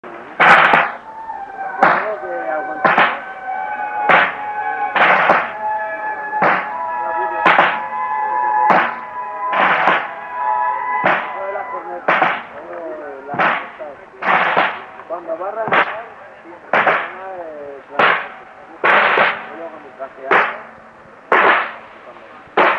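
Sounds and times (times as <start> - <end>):
street ambience at a shrine in Mexico: 0.0 - 22.7.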